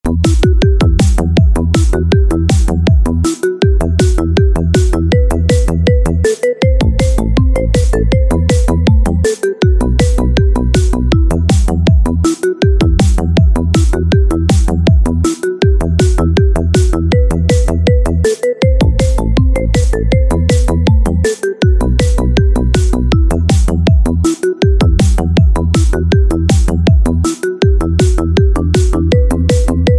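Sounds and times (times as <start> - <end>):
instrumental ringtone music: 0.0 - 29.9.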